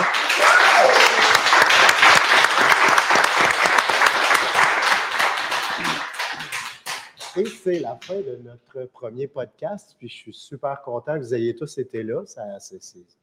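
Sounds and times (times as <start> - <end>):
audience applause: 0.0 - 8.2
speech: 7.4 - 13.2.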